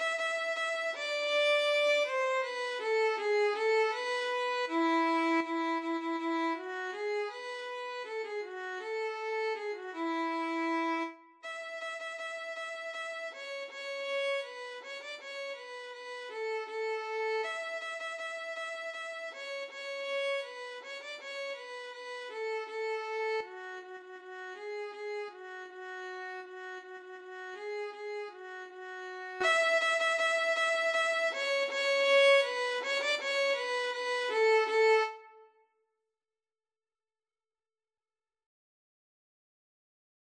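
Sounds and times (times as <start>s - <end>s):
violin and viola duet march: 0.0s - 35.4s.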